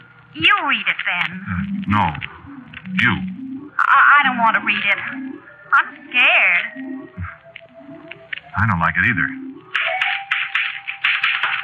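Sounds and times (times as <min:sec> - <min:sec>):
speech: 0:00.4 - 0:07.2, 0:08.5 - 0:09.4
typewriter typing: 0:09.8 - 0:11.6.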